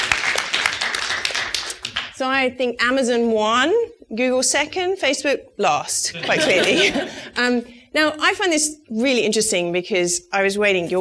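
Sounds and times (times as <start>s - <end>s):
audience clapping: 0.0s - 2.2s
speech: 2.2s - 10.9s
laughter: 6.1s - 7.4s.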